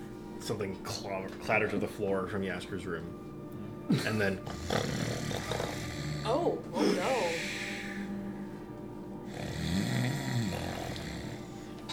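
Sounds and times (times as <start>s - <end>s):
speech: 0.4s - 3.3s, 3.9s - 7.6s
snoring: 4.0s - 8.1s, 9.2s - 11.8s.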